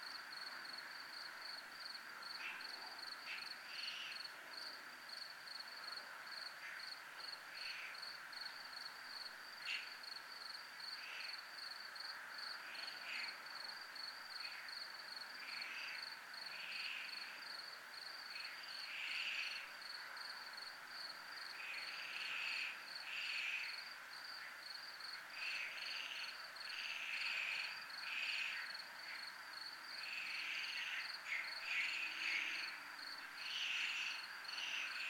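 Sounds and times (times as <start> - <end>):
cricket chirping: 0.0 - 35.0.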